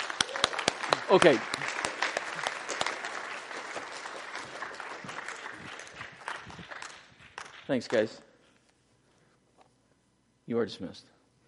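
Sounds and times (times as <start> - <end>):
audience applause: 0.0 - 7.7
speech: 1.1 - 1.6, 7.7 - 8.3, 10.5 - 11.2.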